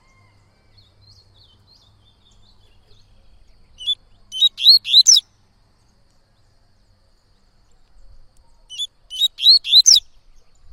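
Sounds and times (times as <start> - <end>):
Yellow-bellied seedeater singing: 0.0 - 10.7.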